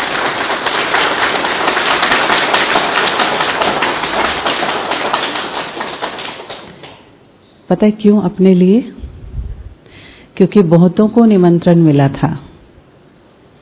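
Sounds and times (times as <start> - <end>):
audience clapping: 0.0 - 7.1
speech: 7.7 - 9.0, 10.4 - 12.5.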